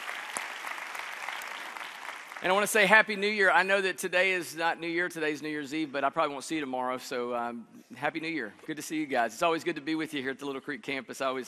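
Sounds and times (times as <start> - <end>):
audience applause, hand clapping: 0.0 - 2.9
speech: 2.4 - 11.4.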